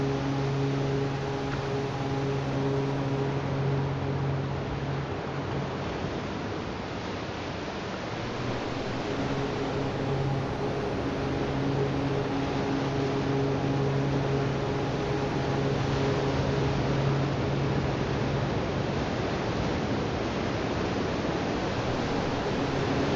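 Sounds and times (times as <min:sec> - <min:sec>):
om chanting: 0:00.0 - 0:05.8, 0:08.2 - 0:19.0, 0:21.5 - 0:23.1
beach ambience at Linda Mar Beach: 0:00.0 - 0:23.1.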